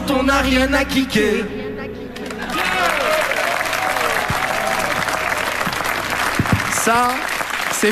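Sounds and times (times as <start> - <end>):
speech: 0.2 - 1.6, 6.9 - 7.9
audience applause: 2.2 - 7.9.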